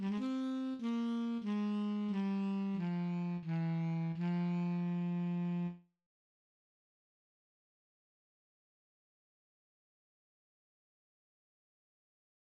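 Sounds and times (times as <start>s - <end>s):
tenor etude: 0.0s - 5.8s.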